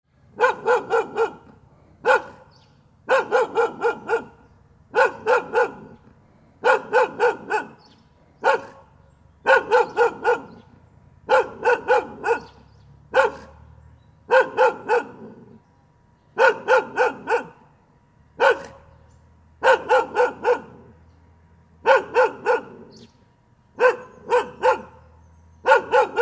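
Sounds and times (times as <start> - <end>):
dog barking: 0.4 - 6.0, 6.6 - 10.7, 11.3 - 13.7, 14.3 - 15.6, 16.4 - 17.7, 18.4 - 18.9, 19.6 - 21.0, 21.8 - 23.0, 23.8 - 26.2.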